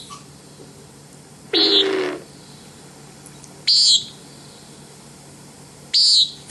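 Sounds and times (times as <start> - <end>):
common nighthawk buzzy peent: 1.5 - 2.3, 3.7 - 4.2, 5.9 - 6.4.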